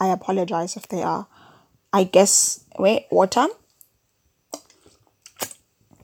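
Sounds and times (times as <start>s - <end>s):
speech: 0.1s - 3.6s
dry sticky lip smacks: 4.5s - 6.0s.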